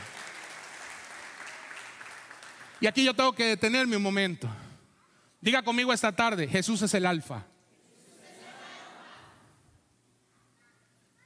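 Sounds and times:
audience applause: 0.0s - 2.8s
speech: 2.8s - 4.6s, 5.4s - 7.5s
laughter: 7.9s - 9.6s.

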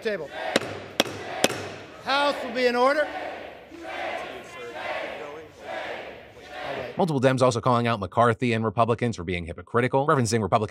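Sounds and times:
speech: 0.0s - 0.8s, 2.1s - 3.2s, 7.0s - 10.7s
crowd shouting in a chamber: 0.0s - 7.0s.

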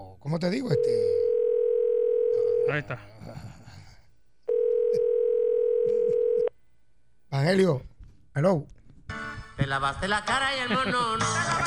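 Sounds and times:
speech: 0.2s - 1.3s, 2.6s - 3.6s, 7.3s - 11.6s
mid-pitched telephone dial tone while placing a call: 4.5s - 6.5s
laughter: 10.6s - 11.6s.

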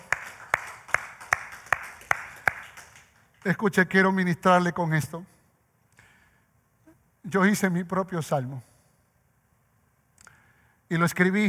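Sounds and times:
rhythmic clapping: 0.0s - 3.6s
speech: 3.4s - 5.3s, 7.3s - 8.7s, 10.9s - 11.4s.

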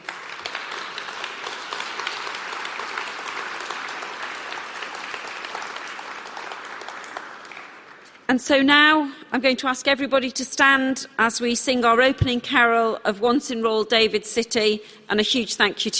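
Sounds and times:
crowd applause: 0.0s - 8.2s
speech: 8.3s - 15.9s.

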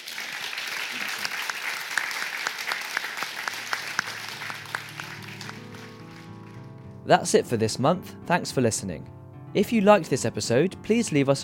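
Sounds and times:
audience applause: 0.0s - 6.8s
speech: 7.1s - 11.4s.

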